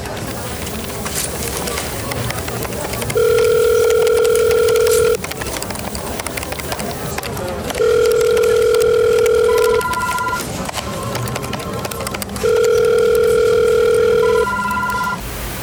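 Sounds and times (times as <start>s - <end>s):
low noise: 0.2s - 15.6s
telephone ringing tone: 0.3s - 7.2s, 7.8s - 10.4s, 11.8s - 15.2s.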